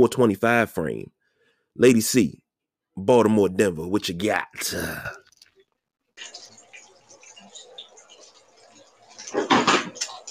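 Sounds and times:
speech: 0.0s - 1.2s, 1.8s - 2.4s, 3.0s - 5.2s
bacon cooking in kitchen: 4.8s - 10.2s
refrigerator clatter in kitchen: 9.3s - 10.1s.

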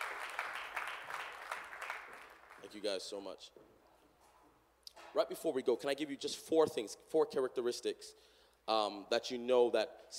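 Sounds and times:
crowd applauding: 0.0s - 2.8s
speech: 2.6s - 3.7s, 5.2s - 10.1s.

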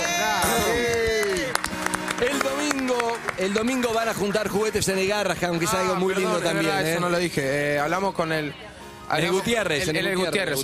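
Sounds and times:
whoops and shouts: 0.0s - 1.6s
audience applause: 0.0s - 4.5s
speech: 3.4s - 10.6s.

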